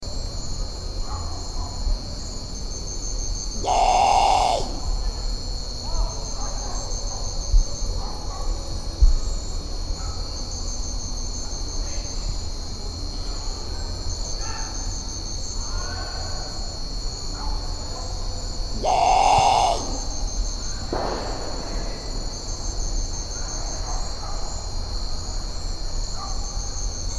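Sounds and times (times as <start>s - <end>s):
insect chorus: 0.1s - 27.1s
great potoo raspy bawl: 3.6s - 5.0s, 18.8s - 20.3s.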